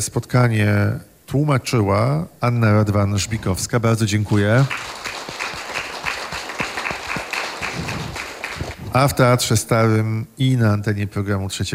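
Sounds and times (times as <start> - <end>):
speech: 0.0 - 5.0, 9.0 - 11.7
audience applause: 4.4 - 8.9.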